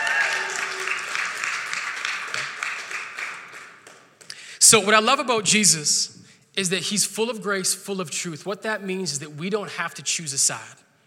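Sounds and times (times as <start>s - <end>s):
audience applause: 0.0s - 4.1s
speech: 4.7s - 10.9s.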